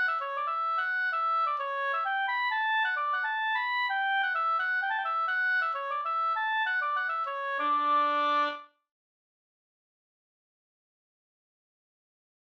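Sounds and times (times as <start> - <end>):
Swedish polska folk tune: 0.0 - 8.7.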